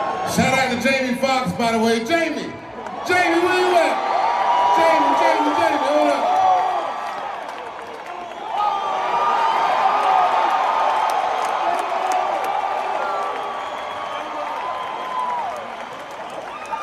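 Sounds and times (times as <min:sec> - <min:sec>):
speech: 0:00.3 - 0:04.0
large crowd cheering and whooping at curtain call: 0:02.8 - 0:16.8
scattered clapping: 0:07.0 - 0:08.3, 0:10.0 - 0:16.8.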